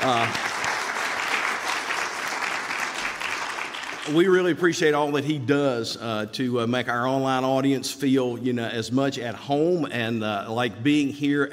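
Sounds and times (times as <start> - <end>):
audience applause: 0.0 - 4.6
speech: 4.1 - 11.5.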